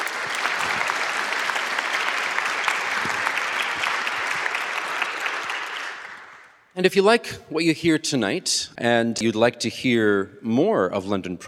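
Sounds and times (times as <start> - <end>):
audience applause: 0.0 - 6.6
speech: 6.8 - 11.4.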